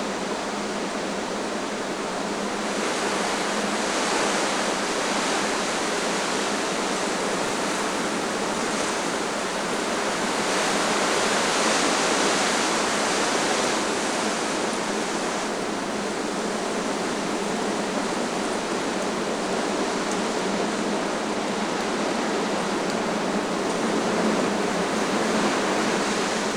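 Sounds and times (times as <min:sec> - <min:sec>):
strong wind in the forest: 0:00.0 - 0:26.5.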